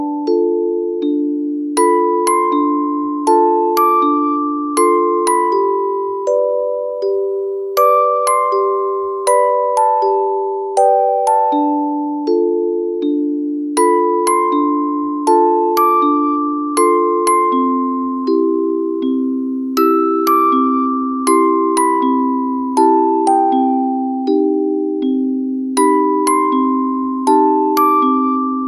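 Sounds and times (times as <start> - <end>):
music box melody: 0.0 - 28.6.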